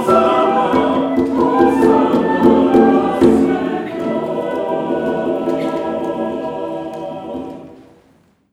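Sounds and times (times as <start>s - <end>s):
Guatemalan santo flute playing: 0.0s - 7.3s.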